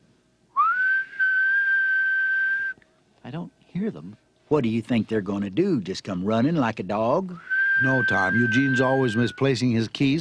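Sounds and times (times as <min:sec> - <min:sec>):
person whistling to find keys: 0:00.6 - 0:02.8, 0:07.4 - 0:09.5
speech: 0:03.3 - 0:10.1.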